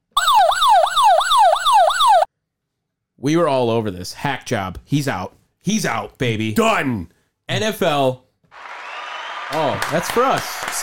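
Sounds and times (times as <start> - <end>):
backup alarm sound effect: 0.1 - 2.3
speech: 3.2 - 8.7, 9.5 - 10.8.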